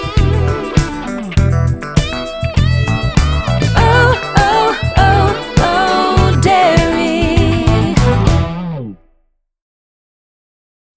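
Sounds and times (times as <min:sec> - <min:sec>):
disco dance music: 0:00.0 - 0:08.6.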